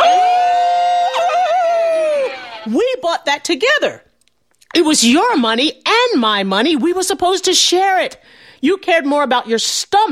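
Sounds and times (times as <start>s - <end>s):
storyteller imitating a dog's howling cry: 0.0s - 2.6s
speech: 2.7s - 4.1s, 4.7s - 10.1s.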